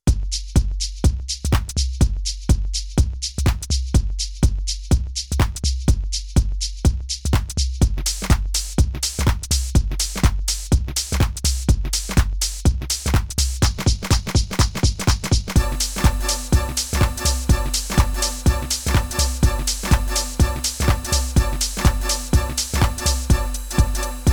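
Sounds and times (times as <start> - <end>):
house shuffle beat: 0.0 - 24.3
techno polymeter rhythm: 13.8 - 24.3.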